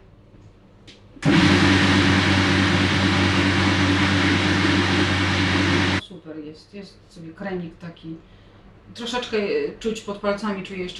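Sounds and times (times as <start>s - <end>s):
blender grinding porridge with nuts: 1.2s - 6.0s
speech: 6.8s - 10.9s.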